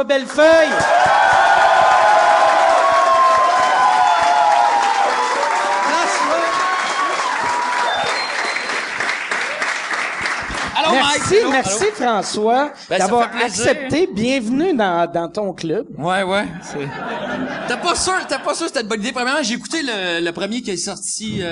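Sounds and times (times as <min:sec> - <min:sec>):
speech: 0:00.0 - 0:01.2, 0:10.9 - 0:21.5
audience applause welcoming the first guest: 0:00.7 - 0:12.0
laughter: 0:16.4 - 0:18.9.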